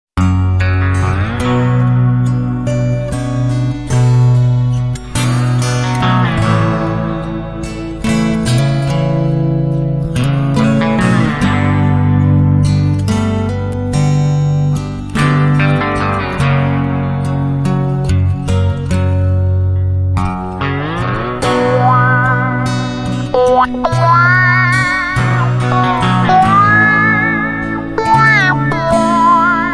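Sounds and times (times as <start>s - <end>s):
ballad with wah effect: 0.3s - 19.0s, 20.1s - 29.7s.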